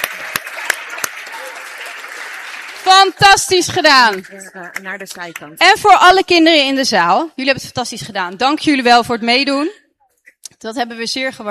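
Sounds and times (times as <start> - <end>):
audience applause: 0.0 - 5.6
speech: 3.0 - 9.8, 10.6 - 11.4.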